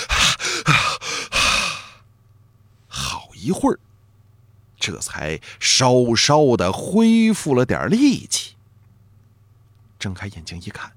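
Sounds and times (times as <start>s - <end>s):
person gasping for breath after surfacing: 0.0s - 2.0s
speech: 3.4s - 3.9s, 4.8s - 8.6s, 10.0s - 10.9s.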